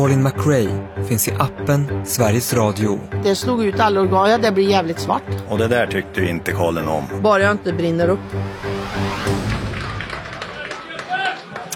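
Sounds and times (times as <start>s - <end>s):
speech: 0.0s - 9.4s
scattered clapping from a football stadium crowd: 9.7s - 11.7s.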